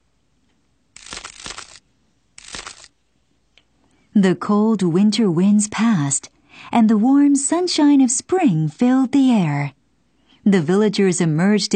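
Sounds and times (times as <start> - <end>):
cracking sound: 1.0 - 3.0
speech: 4.2 - 9.8, 10.4 - 11.7.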